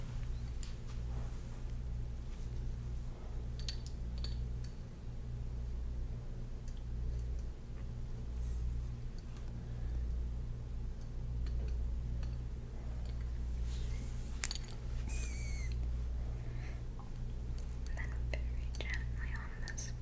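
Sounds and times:
scalp and shoulder massage rubbing and brushing: 0:00.0 - 0:03.4, 0:13.4 - 0:15.1
steady low hum: 0:00.0 - 0:20.0.

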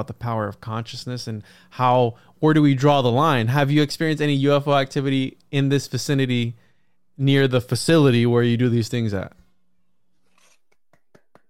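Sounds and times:
speech: 0:00.0 - 0:06.6, 0:07.2 - 0:09.4
soft slow golf clap: 0:10.6 - 0:11.4.

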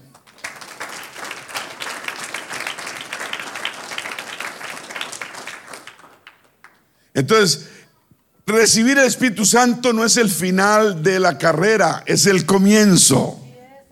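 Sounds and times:
audience applause: 0:00.0 - 0:06.9
speech: 0:07.2 - 0:07.7, 0:08.5 - 0:13.4.

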